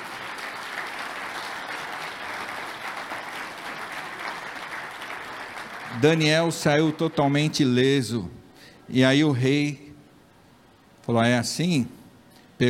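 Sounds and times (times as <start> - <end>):
audience applauding loudly: 0.0 - 7.2
speech: 6.0 - 9.8, 11.1 - 12.0.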